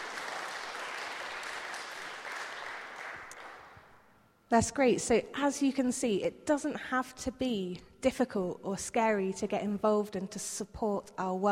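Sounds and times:
audience applause: 0:00.0 - 0:03.9
speech: 0:04.5 - 0:11.4.

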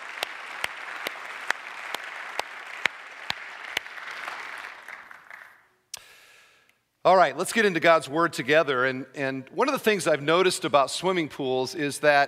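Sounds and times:
church congregation applauding a campus third anniversary: 0:00.0 - 0:05.7
speech: 0:07.1 - 0:12.2.

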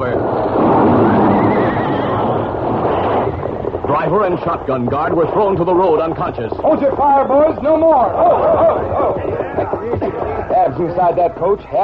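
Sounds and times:
dense rumbling: 0:00.0 - 0:11.8
wounded horse whinnying: 0:01.1 - 0:03.4
speech: 0:04.1 - 0:11.8.

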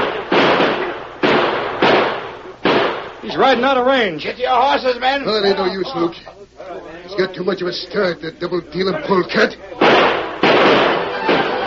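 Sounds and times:
gunshots fired at a fleeing horseback rider: 0:00.0 - 0:03.2, 0:09.8 - 0:11.6
speech: 0:03.3 - 0:10.1.

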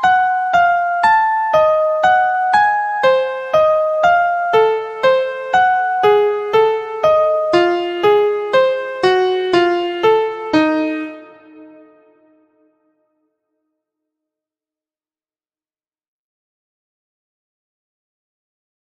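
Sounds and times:
atomic scale notes in key of Eb: 0:00.0 - 0:12.3.

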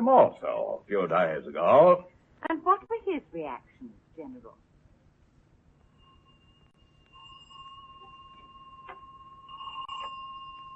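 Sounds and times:
speech: 0:00.0 - 0:04.6
bell ringing: 0:05.7 - 0:10.7.

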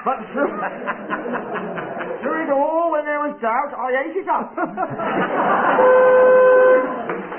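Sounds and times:
speech: 0:00.0 - 0:01.6, 0:03.4 - 0:06.4
laughter: 0:00.0 - 0:02.6, 0:04.4 - 0:07.2
game show buzzer: 0:05.6 - 0:07.0.

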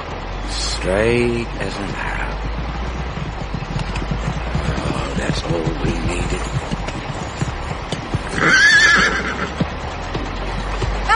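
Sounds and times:
horse hooves clip-clopping: 0:00.0 - 0:11.1
speech: 0:00.8 - 0:02.7, 0:05.2 - 0:06.8, 0:08.4 - 0:08.8
horse neighing: 0:08.3 - 0:09.6.

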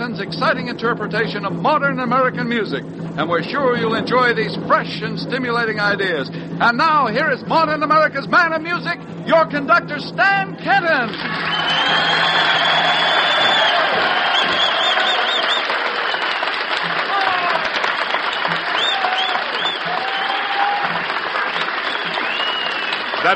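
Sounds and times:
speech: 0:00.1 - 0:13.0
audience applause in ballroom: 0:11.0 - 0:23.3.

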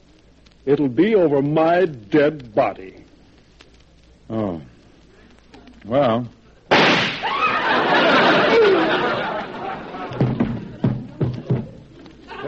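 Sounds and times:
speech: 0:00.6 - 0:03.0, 0:04.3 - 0:04.7, 0:05.9 - 0:06.4
gunshot from a real gun, radio drama sound effect: 0:06.7 - 0:07.4
laughter: 0:07.2 - 0:12.4
small thumps: 0:10.1 - 0:12.2.

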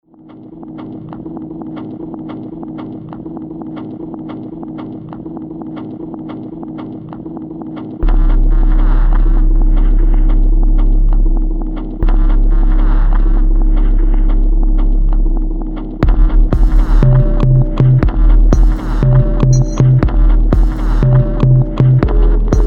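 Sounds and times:
sample beat: 0:07.4 - 0:22.6.

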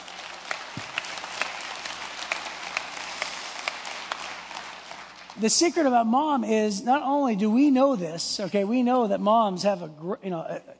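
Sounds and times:
audience clapping: 0:00.0 - 0:05.4
speech: 0:05.4 - 0:10.7.

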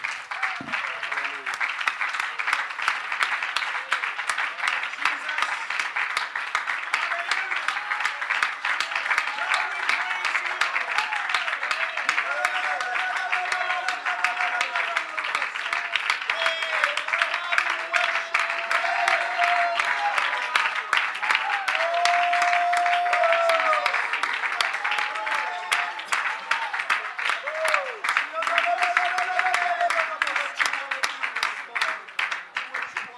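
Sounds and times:
audience hand clapping: 0:00.0 - 0:33.1.

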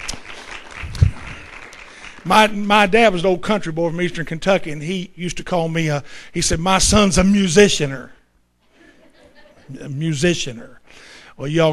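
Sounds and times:
audience applause for a live band: 0:00.0 - 0:02.3
speech: 0:02.2 - 0:08.2, 0:09.7 - 0:11.7.

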